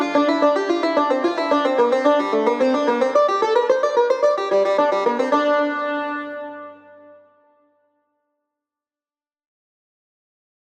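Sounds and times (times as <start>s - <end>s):
tar playing in nava mode: 0.0s - 7.3s.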